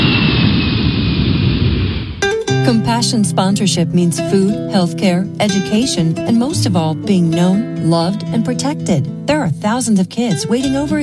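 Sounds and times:
airplane taking off at Williamsport Regional Airport: 0:00.0 - 0:04.1
speech: 0:02.7 - 0:11.0.

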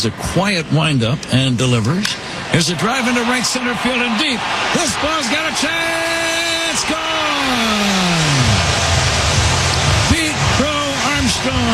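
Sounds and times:
speech: 0:00.0 - 0:08.5, 0:11.4 - 0:11.7
crowd cheering: 0:02.5 - 0:11.7.

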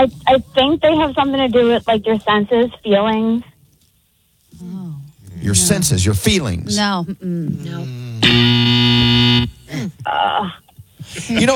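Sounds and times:
speech: 0:00.0 - 0:03.5, 0:04.6 - 0:11.5
game-show wrong-answer buzzer: 0:07.7 - 0:09.7
laughter: 0:11.0 - 0:11.5.

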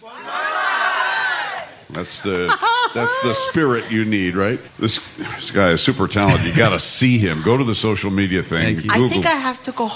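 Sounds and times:
speech: 0:00.0 - 0:00.3, 0:01.9 - 0:09.9
crowd shouting Banzai for a ukulele player: 0:00.0 - 0:05.5
laughter: 0:00.0 - 0:08.1.

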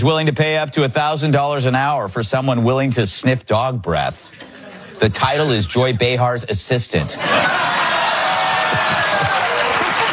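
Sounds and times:
speech: 0:00.0 - 0:08.0
studio audience howling and cheering: 0:07.2 - 0:10.1.

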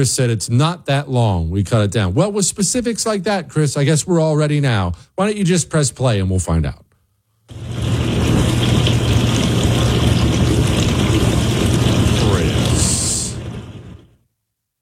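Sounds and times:
speech: 0:00.0 - 0:06.8
dishwasher spraying water: 0:07.5 - 0:14.1
dishwasher motor hum: 0:07.5 - 0:14.2.

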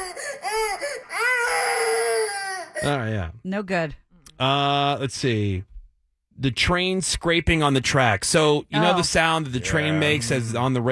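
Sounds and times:
baby crying: 0:00.0 - 0:03.0, 0:08.8 - 0:10.4
speech: 0:02.8 - 0:05.7, 0:06.4 - 0:10.9.

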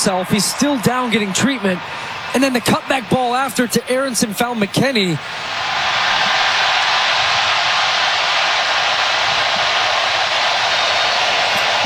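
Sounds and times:
speech: 0:00.0 - 0:05.8
laughter: 0:00.0 - 0:11.8
stadium crowd roaring after a goal: 0:00.0 - 0:11.8.

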